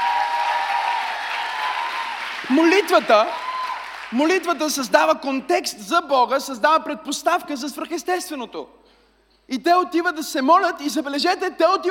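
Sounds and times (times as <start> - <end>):
audience applause: 0.0 - 4.2
speech: 2.5 - 3.4, 4.1 - 8.8, 9.5 - 11.8.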